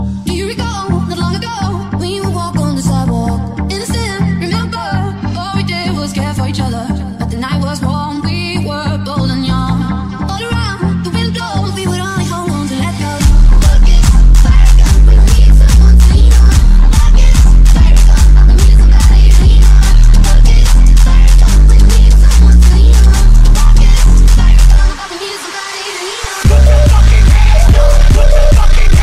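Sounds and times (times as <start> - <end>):
bass: 0.0 - 25.0, 26.4 - 29.0.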